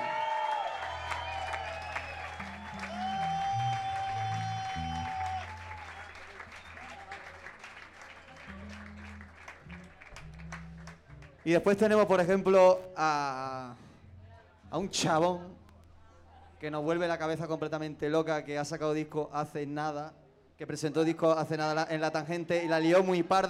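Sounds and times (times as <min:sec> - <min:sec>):
concert crowd applause at Espacio 911 in Buenos Aires: 0:00.0 - 0:12.1
low sustained bass tone: 0:00.8 - 0:07.2, 0:08.4 - 0:12.6, 0:14.0 - 0:15.9
speech: 0:11.4 - 0:13.8, 0:14.7 - 0:15.6, 0:16.6 - 0:23.4.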